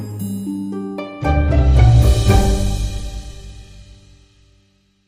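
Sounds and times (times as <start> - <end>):
short dramedy sting: 1.4 - 4.3.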